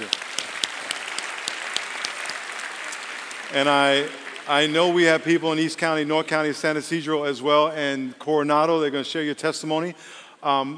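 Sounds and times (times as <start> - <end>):
crowd clapping: 0.0 - 5.6
speech: 3.5 - 10.7.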